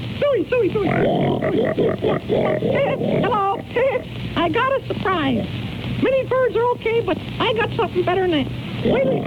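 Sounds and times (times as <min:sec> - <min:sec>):
speech: 0:00.3 - 0:09.2
cartoon voice imitating a pig oinking and grunting: 0:00.7 - 0:04.1, 0:08.8 - 0:09.2.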